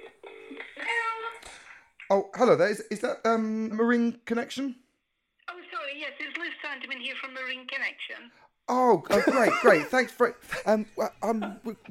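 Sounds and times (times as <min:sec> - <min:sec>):
telephone ringing tone on call: 0:00.0 - 0:01.3
speech: 0:02.1 - 0:04.8, 0:06.9 - 0:11.8
laughter: 0:09.1 - 0:11.8.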